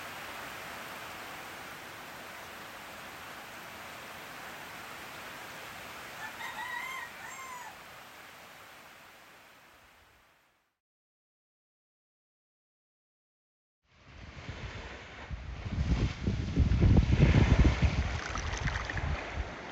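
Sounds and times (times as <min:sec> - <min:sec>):
ocean: 0:00.0 - 0:10.2, 0:14.0 - 0:15.8, 0:17.1 - 0:19.7
rain: 0:00.0 - 0:10.5.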